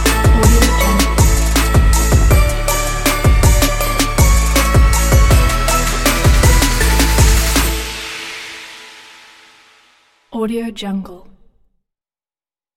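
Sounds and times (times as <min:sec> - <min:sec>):
Christmas trap hip hop: 0:00.0 - 0:07.8.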